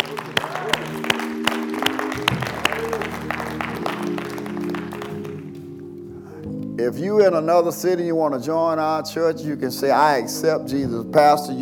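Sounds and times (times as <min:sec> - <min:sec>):
audience clapping: 0:00.0 - 0:05.8
speech: 0:06.8 - 0:11.6.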